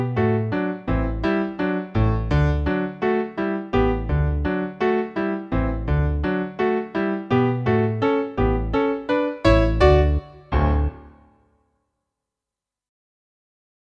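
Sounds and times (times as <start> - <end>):
backing music: 0.2 - 11.2.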